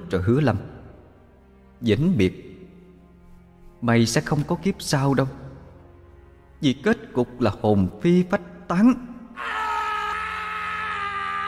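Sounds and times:
speech: 0.1 - 0.7, 1.8 - 2.5, 3.8 - 5.4, 6.6 - 9.6
person wailing miserably: 9.4 - 11.4.

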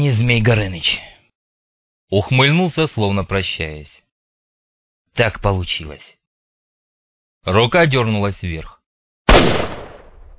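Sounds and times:
speech: 0.0 - 1.1, 2.1 - 4.0, 5.2 - 6.2, 7.4 - 8.8
pistol gunshot: 9.3 - 10.3.

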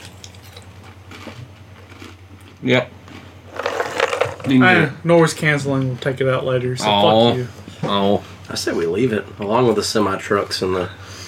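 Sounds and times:
person eating goldfish crackers: 0.0 - 4.9
speech: 2.6 - 3.0, 4.5 - 11.0.

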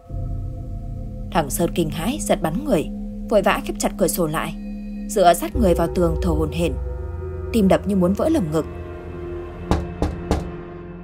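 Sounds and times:
low steady hum: 0.0 - 9.6
speech: 1.3 - 6.9, 7.5 - 8.8
sharp knocks on a door: 9.6 - 10.6.

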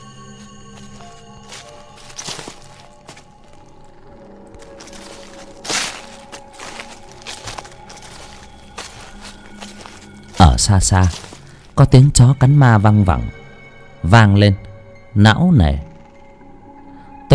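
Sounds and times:
footsteps crunching on dry leaves outside a house: 0.0 - 11.8
speech: 10.4 - 11.2, 11.8 - 13.4, 14.0 - 15.9.

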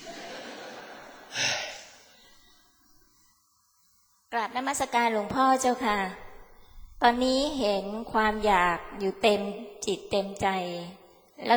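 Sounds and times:
laughter: 0.0 - 1.9
person catching breath after fast speaking: 1.3 - 2.1
speech: 4.3 - 6.2, 7.0 - 11.5.

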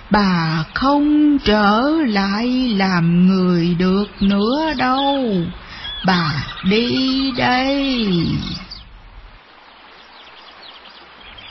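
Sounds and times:
speech: 0.1 - 8.6
bird chirping: 1.6 - 9.0, 9.9 - 11.4.

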